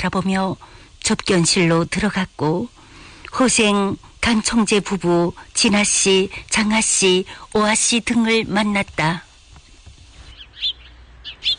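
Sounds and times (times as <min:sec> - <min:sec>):
speech: 0:00.0 - 0:09.3
birds chirping: 0:09.6 - 0:11.5.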